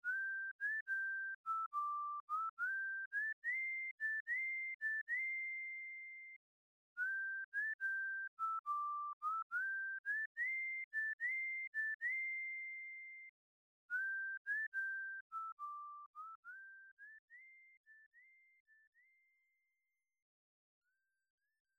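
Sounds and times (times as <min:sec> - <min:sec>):
whistle: 0:00.0 - 0:06.4, 0:07.0 - 0:13.3, 0:13.9 - 0:19.1.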